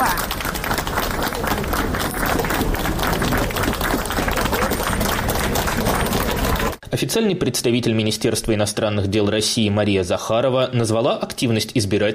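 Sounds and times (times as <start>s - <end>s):
crowd applause: 0.0s - 6.8s
speech: 7.0s - 12.1s.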